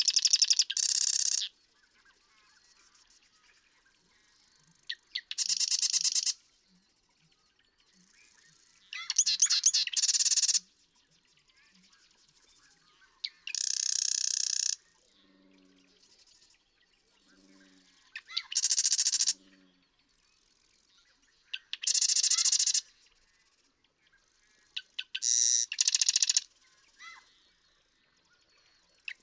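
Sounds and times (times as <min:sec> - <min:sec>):
Marsh Wren singing: 0:00.0 - 0:01.5, 0:04.7 - 0:06.9, 0:07.8 - 0:11.6, 0:13.0 - 0:16.2, 0:17.2 - 0:20.0, 0:21.4 - 0:22.9, 0:24.7 - 0:27.2.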